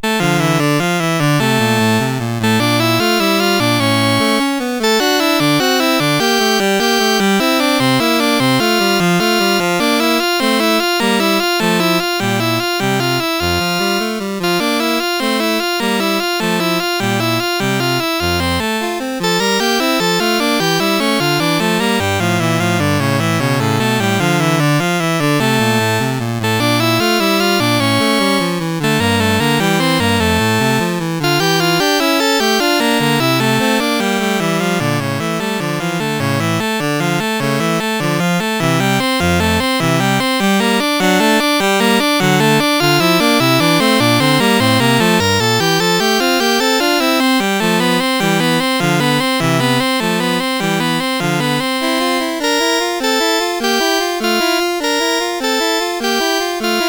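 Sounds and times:
sonatina in D minor on CSG8580R5 sound chip: 0:00.0 - 0:56.8.

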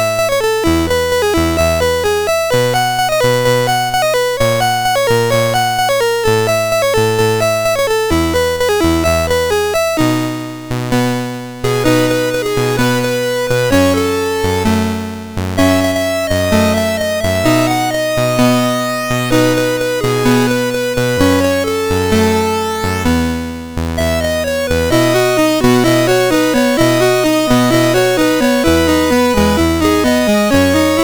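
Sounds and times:
chiptune music on MOS6581R4 sound chip: 0:00.0 - 0:31.0.

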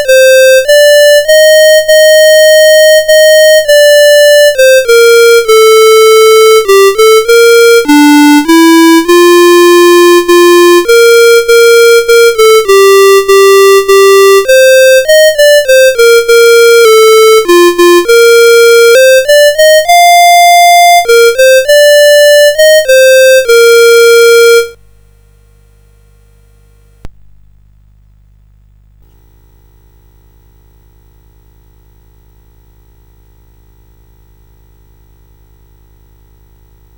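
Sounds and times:
national anthem on CSG8580R5 sound chip: 0:00.0 - 0:24.8.

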